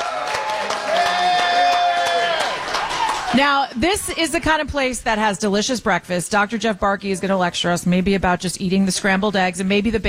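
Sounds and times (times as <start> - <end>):
audience applause: 0.0 - 4.1
speech: 3.3 - 10.0.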